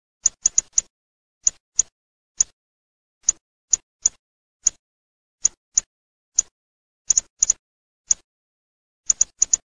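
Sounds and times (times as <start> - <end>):
hawfinch: 0.2 - 2.6, 5.4 - 8.3, 9.0 - 9.6.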